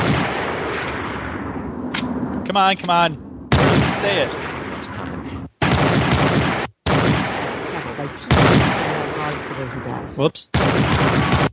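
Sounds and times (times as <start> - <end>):
video game gunfire: 0.0 - 1.0, 3.5 - 5.0, 5.6 - 9.6, 10.5 - 11.5
speech: 2.5 - 3.2, 4.0 - 4.4, 9.6 - 11.5.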